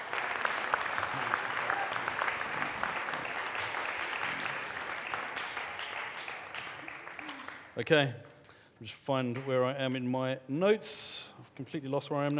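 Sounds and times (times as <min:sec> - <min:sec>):
round of applause: 0:00.0 - 0:08.4
speech: 0:07.8 - 0:12.3.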